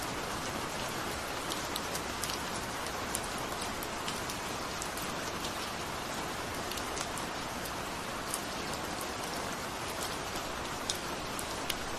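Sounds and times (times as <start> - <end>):
rain: 0.0 - 11.9.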